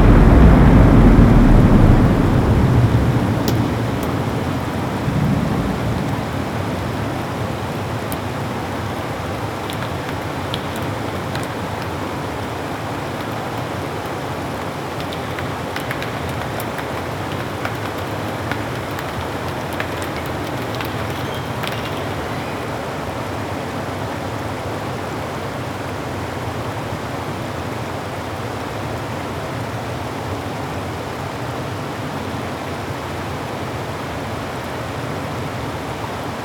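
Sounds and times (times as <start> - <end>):
ocean ambience: 0.0 - 7.7
rainstorm: 0.0 - 36.4.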